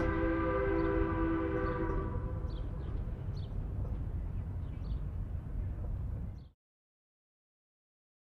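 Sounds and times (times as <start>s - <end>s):
steam train: 0.0s - 6.5s.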